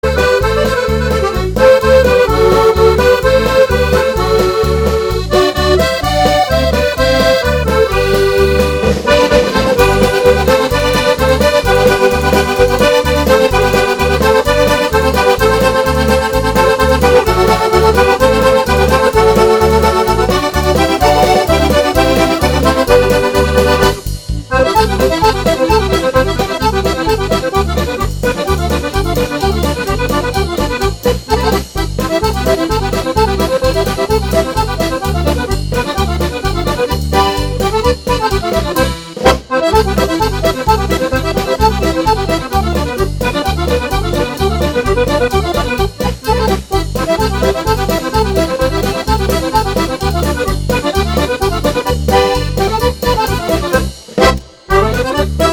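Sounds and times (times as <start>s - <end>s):
polka music: 0.0s - 55.5s.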